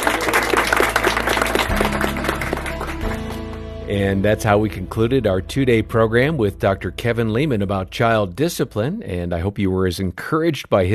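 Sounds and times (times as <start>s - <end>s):
studio audience applauding a guest expert on child discipline: 0.0s - 4.0s
music: 0.0s - 10.0s
speech: 3.9s - 10.9s.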